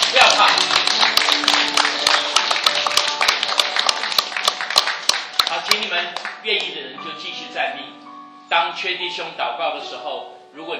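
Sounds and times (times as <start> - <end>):
audience applause: 0.0 - 6.4
speech: 6.0 - 10.7.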